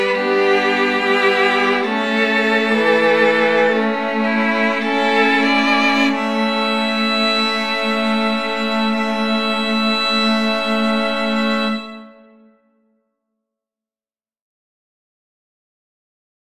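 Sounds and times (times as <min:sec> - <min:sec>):
string quartet: 0:00.0 - 0:12.5.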